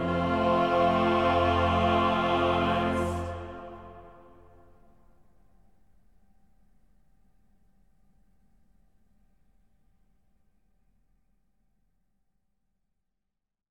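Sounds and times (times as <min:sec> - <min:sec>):
choir singing a chorale: 0:00.0 - 0:04.6.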